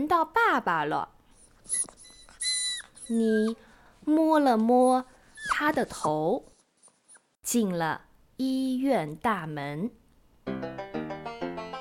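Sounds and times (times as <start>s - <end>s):
speech: 0.0s - 2.0s, 3.1s - 6.5s, 7.4s - 10.7s
stray dog whimpering: 1.4s - 3.7s, 4.5s - 6.2s, 6.8s - 7.4s.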